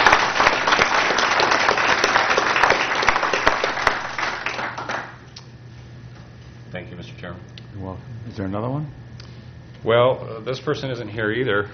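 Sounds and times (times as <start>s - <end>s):
audience applause: 0.0s - 5.2s
speech: 8.4s - 9.0s, 9.8s - 11.7s.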